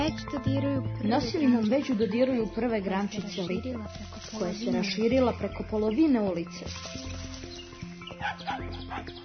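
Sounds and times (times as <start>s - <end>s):
speech: 0.1s - 7.3s, 8.2s - 9.2s
small dog of a tiny breed barking on a street: 8.2s - 9.1s.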